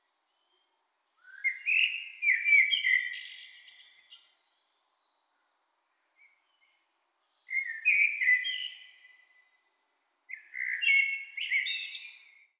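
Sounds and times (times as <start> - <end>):
blackbird singing: 1.2 - 4.4, 7.4 - 9.4, 10.3 - 12.4.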